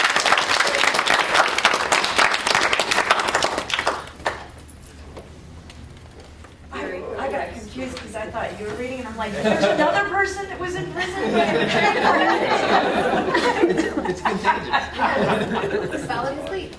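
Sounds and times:
audience clapping: 0.0s - 4.7s
speech: 8.3s - 16.4s
laughter: 9.2s - 16.6s.

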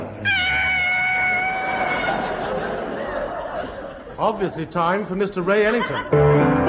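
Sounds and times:
savage tiger yowling sound effect: 0.2s - 2.4s
laughter: 1.2s - 6.1s
speech: 4.3s - 6.5s.

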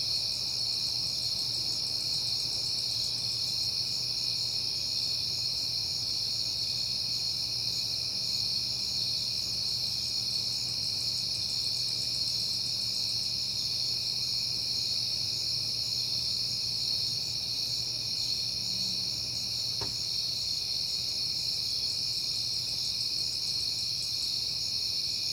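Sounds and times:
crickets trilling in chorus: 0.1s - 25.3s.

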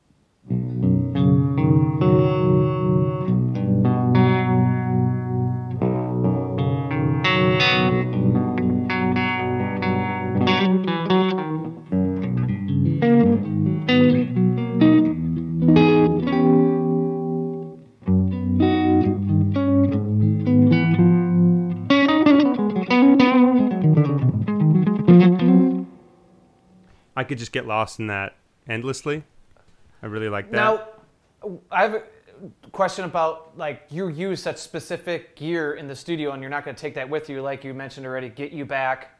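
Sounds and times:
electric guitar through an amp with plate reverb from a Dark World pedal: 0.5s - 26.9s
speech: 27.3s - 29.3s, 30.0s - 39.1s.

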